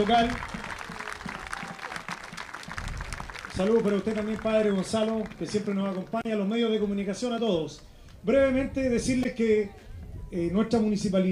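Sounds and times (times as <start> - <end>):
speech: 0.0 - 0.5, 3.6 - 11.3
audience applauding: 0.0 - 6.2.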